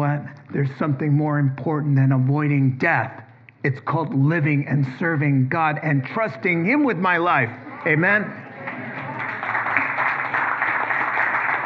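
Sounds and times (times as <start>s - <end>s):
speech: 0.1s - 8.4s
audience applause: 8.5s - 11.6s.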